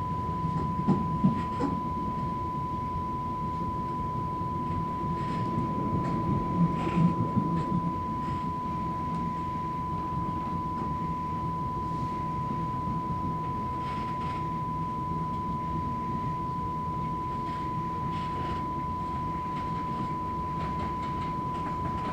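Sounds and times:
electric train squeaking, interior: 0.0 - 22.1.

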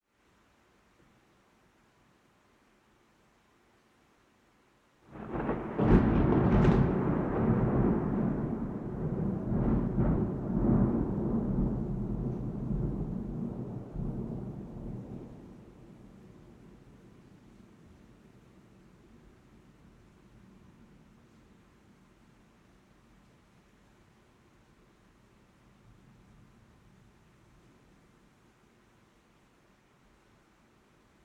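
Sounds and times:
strong rain: 0.0 - 31.2
strong thunder: 5.1 - 16.0.

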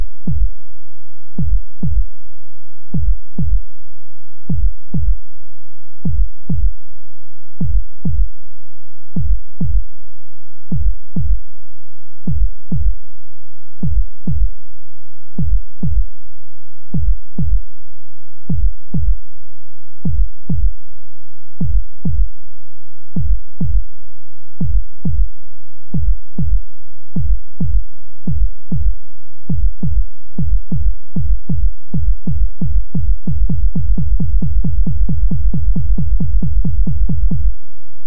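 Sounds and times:
heartbeat speeding up: 0.2 - 0.5, 1.4 - 2.0, 2.9 - 3.6, 4.5 - 5.1, 6.0 - 6.7, 7.6 - 8.3, 9.2 - 9.8, 10.7 - 11.4, 12.3 - 12.9, 13.8 - 14.5, 15.4 - 16.1, 16.9 - 17.6, 18.5 - 19.2, 20.0 - 20.8, 21.6 - 22.3, 23.2 - 23.8, 24.6 - 25.3, 25.9 - 26.6, 27.2 - 37.7.

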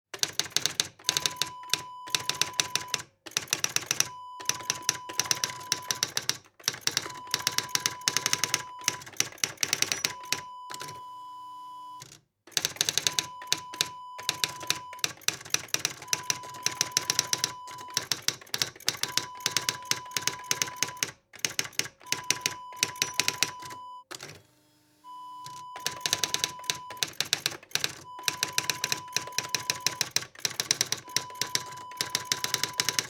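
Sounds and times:
typewriter: 0.1 - 11.0, 12.0 - 24.4, 25.4 - 33.0.

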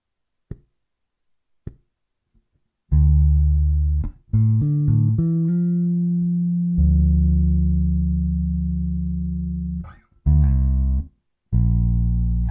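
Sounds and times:
D minor to Bb major bassline: 2.9 - 12.4.

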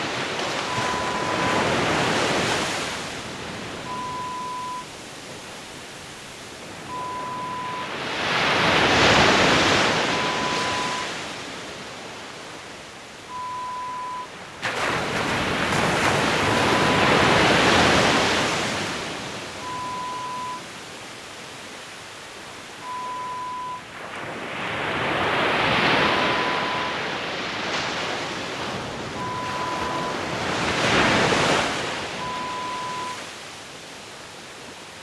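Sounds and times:
relaxing waves: 0.0 - 35.0.

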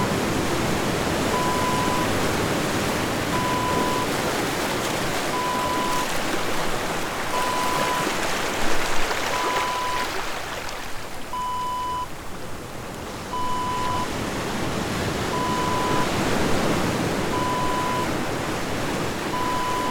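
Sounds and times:
ocean waves: 0.0 - 19.8.

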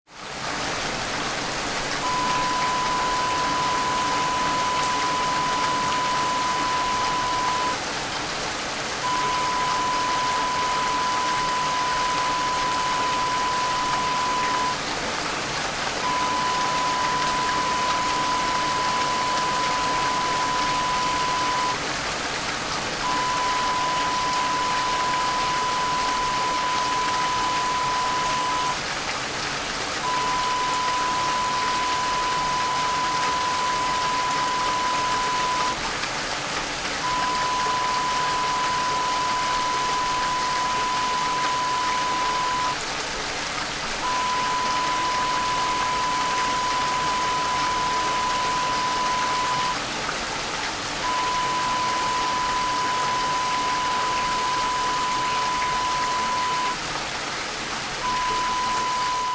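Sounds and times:
rain: 0.1 - 59.3.

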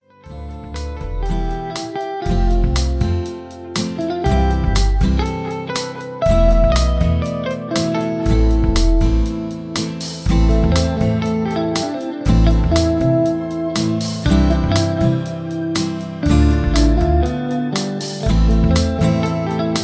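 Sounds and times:
guitar solo: 0.0 - 19.8.

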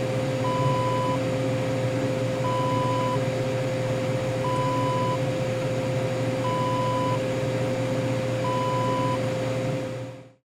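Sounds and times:
ice machine hum: 0.0 - 10.4.

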